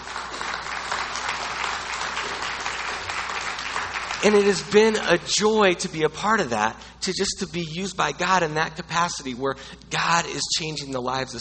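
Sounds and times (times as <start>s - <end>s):
audience clapping: 0.0s - 5.2s
speech: 4.2s - 11.3s.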